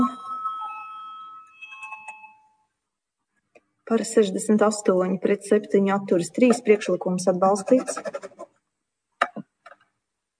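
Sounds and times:
electronic parliament chamber bell ringing before a vote: 0.0s - 2.9s
speech: 3.9s - 8.3s.

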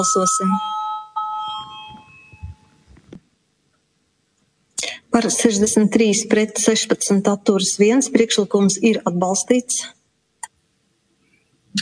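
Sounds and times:
speech: 0.0s - 0.8s, 5.2s - 10.0s
parliament chamber bell: 0.0s - 2.8s.

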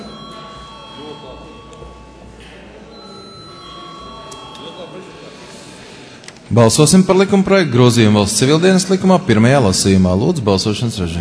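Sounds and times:
parliament voting bell ringing: 0.0s - 6.0s
low murmur of many voices: 0.0s - 11.2s
speech: 1.1s - 2.0s, 4.7s - 5.4s, 6.5s - 11.2s.

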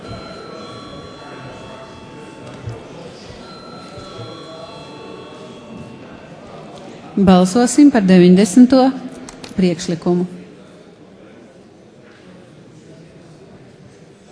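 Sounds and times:
parliament chamber bell ringing: 0.0s - 7.2s
murmur of voices: 0.0s - 14.3s
speech: 7.2s - 10.4s.

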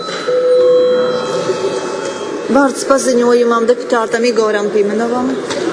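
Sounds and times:
parliament session electric bell ringing: 0.0s - 3.2s
speech: 2.5s - 5.6s.

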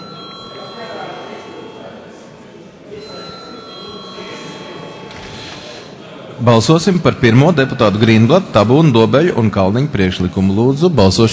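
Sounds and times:
parliament chamber bell ringing: 0.0s - 2.3s, 2.9s - 5.8s
speech: 6.4s - 11.3s.

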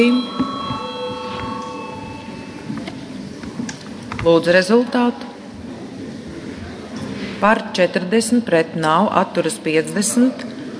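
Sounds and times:
speech: 0.0s - 0.4s, 4.2s - 5.3s, 7.4s - 10.5s
parliamentary voting bell ringing: 0.0s - 3.6s
low murmur of noise: 0.0s - 10.7s.

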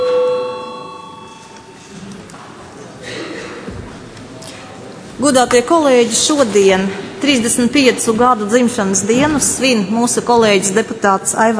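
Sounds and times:
parliament chamber bell for registration: 0.0s - 2.0s
speech: 5.2s - 11.5s.

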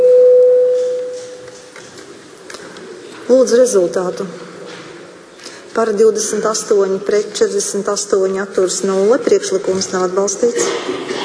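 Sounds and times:
parliament voting electronic bell tone: 0.0s - 1.4s
faint hiss: 0.0s - 11.2s
speech: 3.3s - 4.5s, 5.8s - 11.2s.

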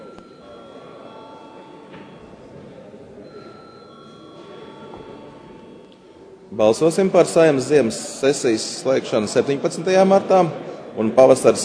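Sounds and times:
parliament chamber bell ringing: 0.0s - 7.7s
murmur of the room and voices: 0.0s - 11.6s
speech: 6.5s - 11.6s.

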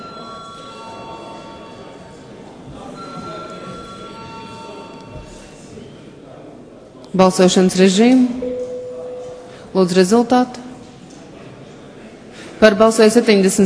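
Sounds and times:
parliament voting bell ringing: 0.0s - 5.2s, 8.3s - 10.2s
speech: 7.1s - 8.4s, 9.8s - 10.6s, 12.6s - 13.6s.

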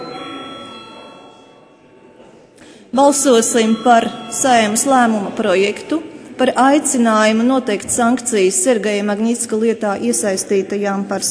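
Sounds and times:
parliament voting bell ringing: 0.0s - 2.4s, 3.0s - 7.4s
speech: 2.9s - 11.2s.

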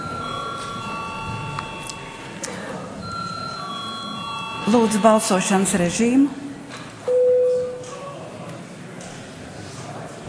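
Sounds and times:
parliament voting call bell ringing: 0.0s - 2.4s, 3.0s - 5.7s
speech: 4.7s - 6.4s.

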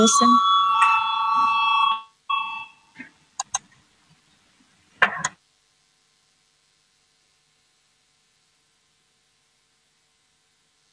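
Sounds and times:
parliamentary voting bell ringing: 0.0s - 2.8s.

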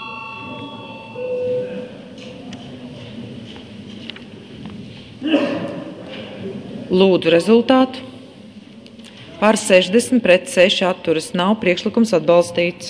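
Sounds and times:
parliamentary voting electronic bell tone: 0.0s - 2.1s
speech: 6.9s - 8.1s, 9.4s - 12.8s.

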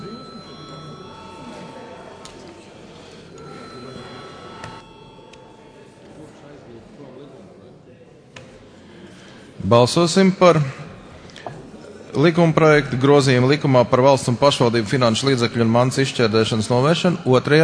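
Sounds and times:
parliamentary voting electric bell ringing: 0.0s - 6.5s
chatter and shuffling: 0.0s - 17.6s
speech: 9.6s - 10.8s, 12.2s - 17.6s.

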